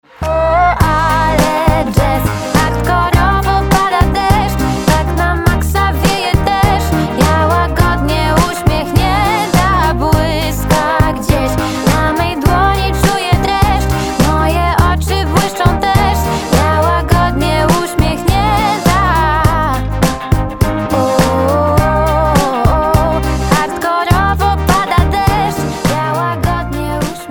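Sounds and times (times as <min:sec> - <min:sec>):
jazz music: 0:00.2 - 0:27.2.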